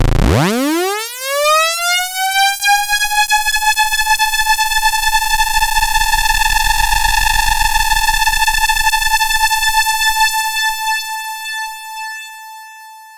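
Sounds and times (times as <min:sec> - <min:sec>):
pulse tone: 0:00.2 - 0:13.1.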